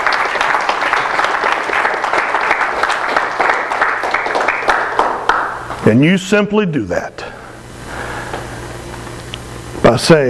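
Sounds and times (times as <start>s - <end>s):
audience applause: 0.0s - 5.8s
speech: 5.8s - 7.3s, 9.9s - 10.2s.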